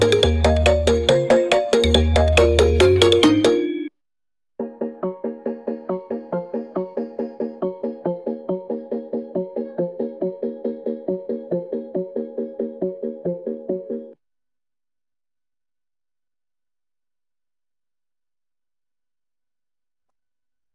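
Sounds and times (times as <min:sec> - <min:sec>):
music: 0:00.0 - 0:03.9, 0:04.6 - 0:14.2.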